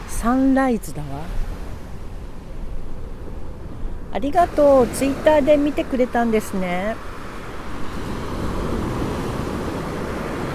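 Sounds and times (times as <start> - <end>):
ocean waves on the shore: 0.0 - 10.5
speech: 0.2 - 1.5, 4.1 - 7.1.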